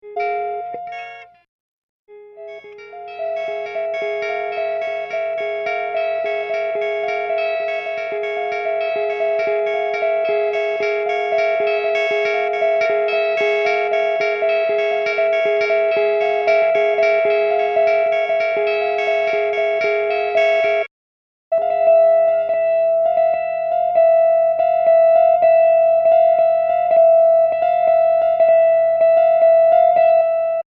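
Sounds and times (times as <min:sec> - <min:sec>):
guitar: 0:00.0 - 0:01.4, 0:02.1 - 0:20.9, 0:21.5 - 0:30.6.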